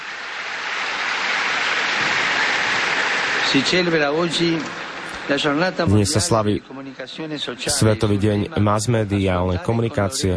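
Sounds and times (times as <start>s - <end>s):
crowd applause: 0.0s - 10.3s
speech: 3.5s - 10.3s.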